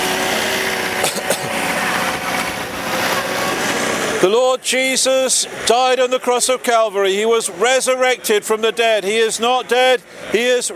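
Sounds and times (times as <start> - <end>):
vacuum cleaner running: 0.0 - 4.3
speech: 4.2 - 10.7.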